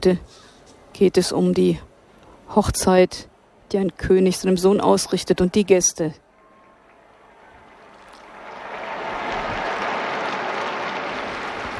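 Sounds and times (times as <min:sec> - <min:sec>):
speech: 0:00.0 - 0:00.4, 0:01.0 - 0:01.9, 0:02.5 - 0:06.2
large crowd applauding: 0:06.4 - 0:11.7.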